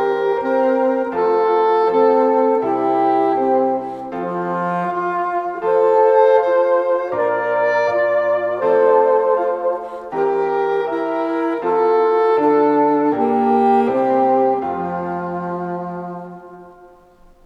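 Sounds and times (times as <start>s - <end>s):
alto saxophone playing a nursery rhyme: 0.0s - 17.4s.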